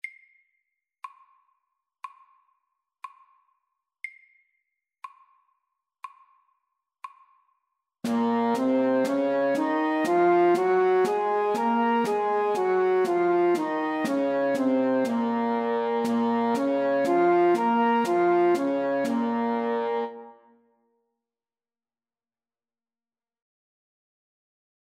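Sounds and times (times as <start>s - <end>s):
music in B minor: 8.1s - 20.5s.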